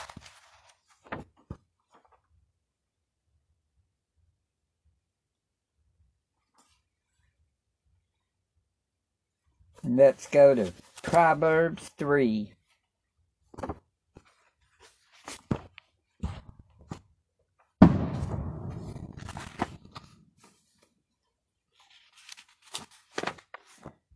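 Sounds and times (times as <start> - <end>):
speech: 9.8 - 12.6
fireworks booming outside: 17.8 - 19.9.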